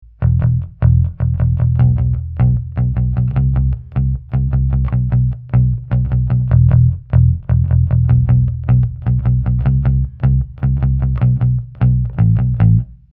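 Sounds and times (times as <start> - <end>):
C-80 bass: 0.0 - 13.1.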